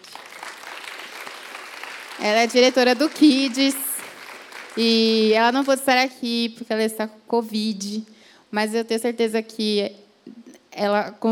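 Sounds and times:
audience applause: 0:00.0 - 0:05.6
speech: 0:02.2 - 0:03.8, 0:04.8 - 0:10.0, 0:10.8 - 0:11.3.

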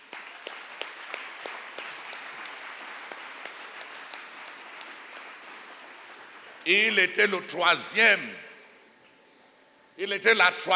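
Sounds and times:
crowd applauding: 0:00.0 - 0:07.0
speech: 0:06.6 - 0:08.4, 0:10.0 - 0:10.7.

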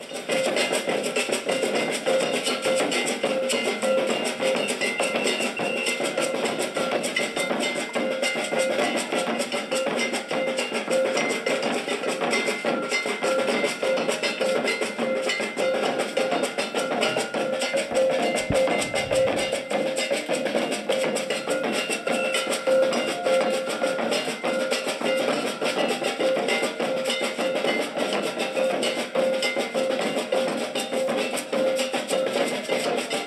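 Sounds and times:
bright clanking cowbell-like beat: 0:00.0 - 0:33.2
improvised street music with percussion on a city square: 0:00.0 - 0:33.2.

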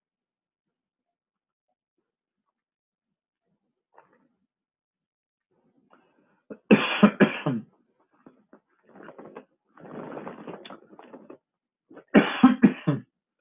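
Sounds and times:
person coughing after something went down the wrong pipe: 0:06.5 - 0:07.7, 0:12.0 - 0:13.1.

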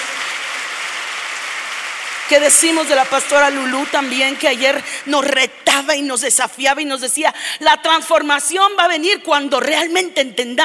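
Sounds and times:
audience applause: 0:00.0 - 0:05.1
speech: 0:02.3 - 0:10.6.

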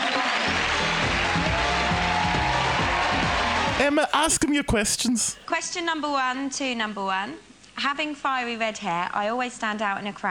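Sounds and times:
audience applause: 0:00.0 - 0:05.3
speech: 0:03.8 - 0:10.2.

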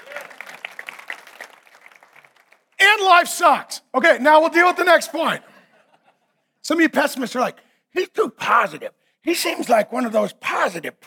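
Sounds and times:
audience clapping: 0:00.0 - 0:02.8
speech: 0:03.0 - 0:05.5, 0:06.7 - 0:11.0
laughter: 0:05.3 - 0:06.4.

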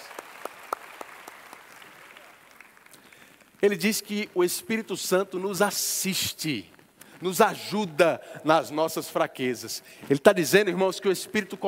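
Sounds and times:
audience applause: 0:00.0 - 0:03.5
speech: 0:03.6 - 0:11.6.

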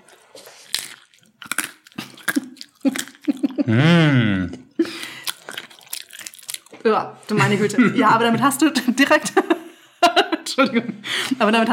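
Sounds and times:
spicy nuts crunching while chewing: 0:00.0 - 0:03.6, 0:04.8 - 0:06.8
laughter: 0:03.3 - 0:05.1, 0:07.3 - 0:11.4
speech: 0:03.7 - 0:04.6, 0:06.8 - 0:09.6, 0:10.6 - 0:11.7.

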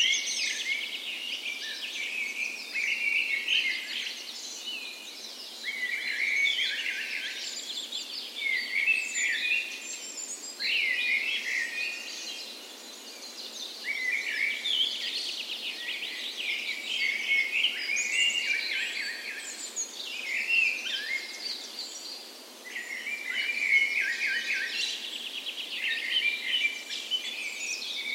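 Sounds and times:
birds in a dawn chorus: 0:00.0 - 0:28.1
faint hiss: 0:00.0 - 0:28.1.

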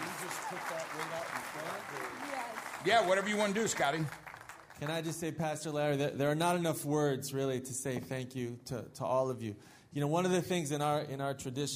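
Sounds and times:
audience applauding: 0:00.0 - 0:05.3
speech: 0:00.5 - 0:04.2, 0:04.8 - 0:11.7.

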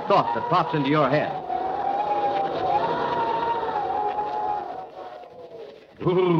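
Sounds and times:
howling wind: 0:00.0 - 0:06.0
speech: 0:00.1 - 0:01.4, 0:06.0 - 0:06.3.

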